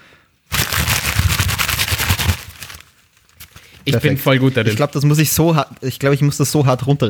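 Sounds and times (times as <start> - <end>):
rustling: 0.5 - 6.0
speech: 3.9 - 7.0.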